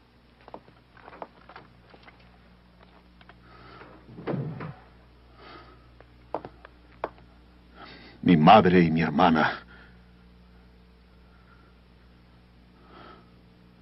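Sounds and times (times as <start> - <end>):
door shutting with a low thud: 4.1 - 4.9
speech: 8.2 - 9.6.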